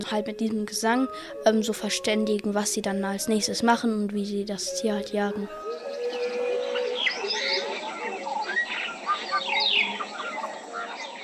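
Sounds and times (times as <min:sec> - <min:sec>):
speech: 0:00.0 - 0:05.9
dense green rainforest ambience: 0:04.7 - 0:11.2.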